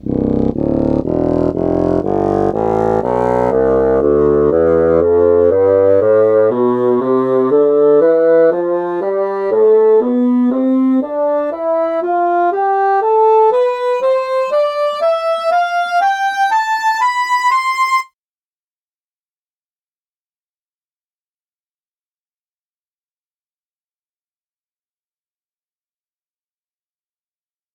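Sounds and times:
bassoon playing a scale: 0.0s - 18.1s.

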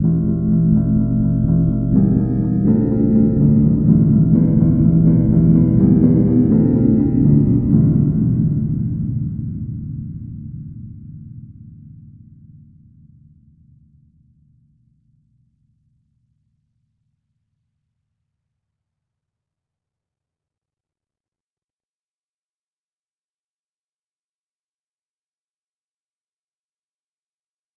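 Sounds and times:
tubular bells bass: 0.0s - 9.1s.

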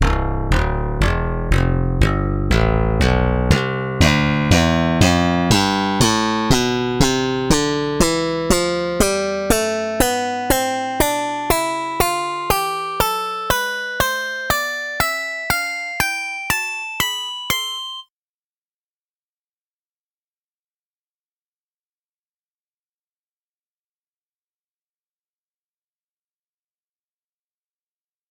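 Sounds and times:
pop bass line: 0.0s - 18.0s.

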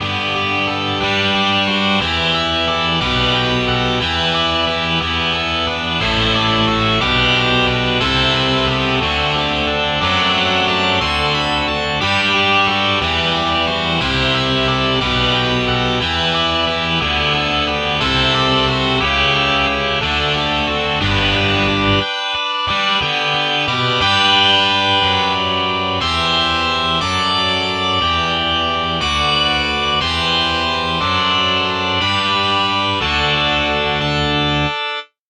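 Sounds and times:
distorted electric guitar: 0.0s - 34.8s.

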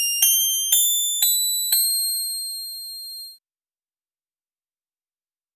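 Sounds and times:
clean guitar scale: 0.2s - 3.4s.

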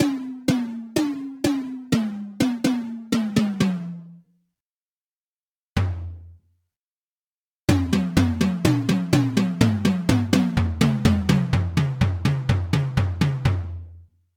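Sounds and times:
melodic tom drum: 0.0s - 4.2s, 5.8s - 6.4s, 7.7s - 13.8s.

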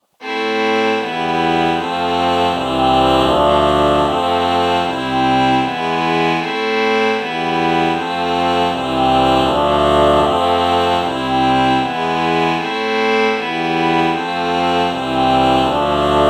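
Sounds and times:
violin chord morphing: 0.2s - 16.2s.

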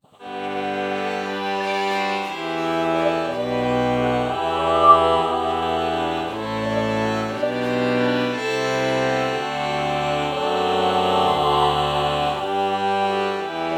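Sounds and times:
violin LPC morph: 0.2s - 13.7s.

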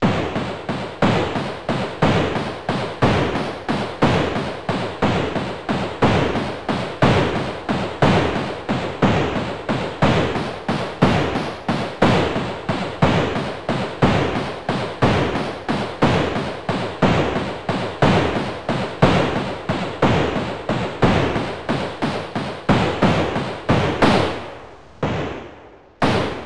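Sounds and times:
gunshot: 0.0s - 26.4s.

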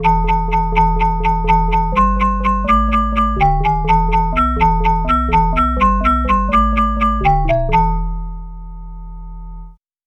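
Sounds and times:
music box bass: 0.0s - 9.8s.

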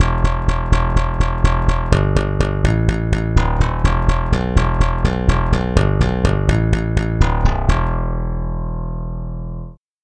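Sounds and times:
slap bass: 0.0s - 9.8s.

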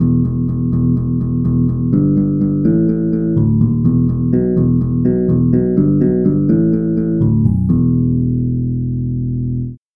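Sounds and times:
harp bass notes: 0.0s - 9.8s.

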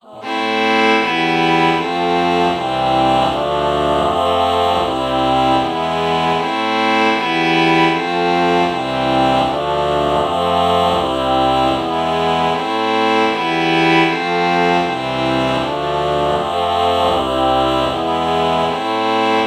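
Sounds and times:
violin chord morphing: 0.2s - 19.4s.

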